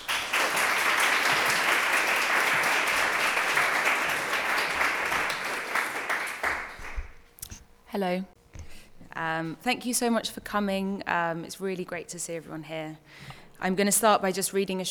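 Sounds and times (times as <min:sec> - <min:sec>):
audience applause in Conway Hall: 0:00.0 - 0:07.2
speech: 0:08.0 - 0:08.4, 0:09.2 - 0:14.9.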